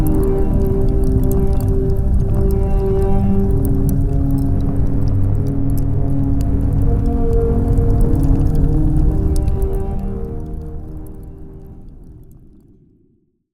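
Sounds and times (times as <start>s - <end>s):
distorted cello: 0.0s - 12.1s
fire: 0.0s - 13.4s.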